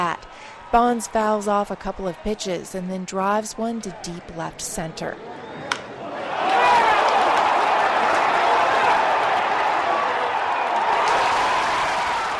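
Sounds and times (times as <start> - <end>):
speech: 0.0 - 5.4
stadium crowd cheering a home run: 0.0 - 12.3
clapping: 6.8 - 8.2.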